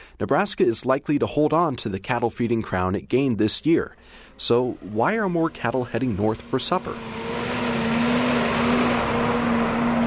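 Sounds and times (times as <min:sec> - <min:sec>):
speech: 0:00.2 - 0:07.3
feed truck engine droning: 0:04.1 - 0:10.0.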